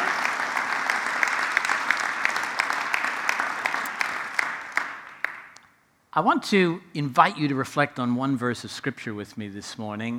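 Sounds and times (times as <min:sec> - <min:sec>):
audience applause: 0:00.0 - 0:05.6
speech: 0:06.2 - 0:10.1.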